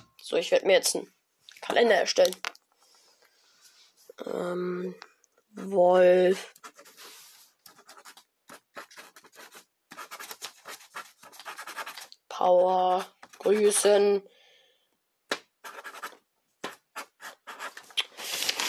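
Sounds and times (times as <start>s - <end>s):
speech: 0.3s - 2.5s, 4.2s - 6.6s, 12.4s - 14.4s
pen or pencil writing on paper: 6.5s - 12.1s, 15.6s - 17.9s.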